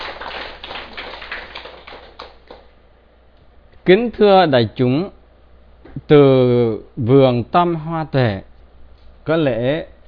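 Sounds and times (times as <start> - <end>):
audience applause: 0.0 - 2.7
speech: 3.9 - 5.2, 6.0 - 8.5, 9.3 - 9.9.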